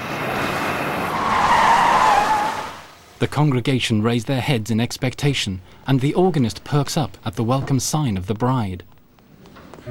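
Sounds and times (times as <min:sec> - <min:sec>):
broad gravelly rush of noise: 0:00.0 - 0:03.1
car skidding to a halt, tires squealing: 0:00.3 - 0:02.9
speech: 0:03.2 - 0:08.9.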